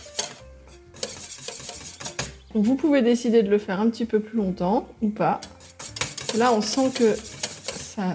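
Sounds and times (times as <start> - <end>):
whisking a thickening boiling caramel mixture in a pot: 0.0 - 2.4, 5.4 - 8.1
speech: 2.5 - 5.6, 6.3 - 7.4, 8.0 - 8.1.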